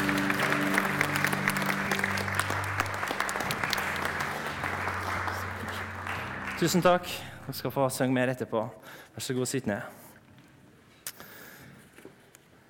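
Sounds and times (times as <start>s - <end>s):
audience applause: 0.0s - 7.7s
speech: 6.6s - 10.0s.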